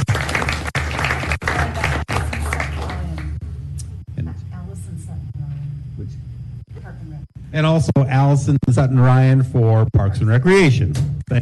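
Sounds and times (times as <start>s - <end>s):
audience applause: 0.0s - 3.4s
speech: 7.6s - 11.3s.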